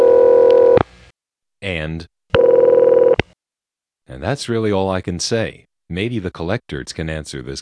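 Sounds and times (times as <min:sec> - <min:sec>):
telephone ring from a Bell System step-by-step PBX: 0:00.0 - 0:00.8, 0:02.4 - 0:03.2
speech: 0:01.7 - 0:02.2, 0:04.1 - 0:07.6.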